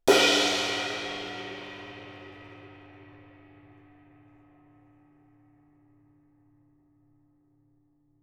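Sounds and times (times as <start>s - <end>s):
cymbal: 0.0s - 6.5s.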